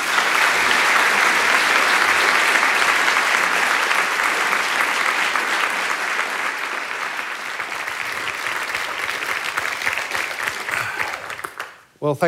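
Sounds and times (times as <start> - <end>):
audience applause welcoming a speaker to a talk on politics and public trust: 0.0 - 11.9.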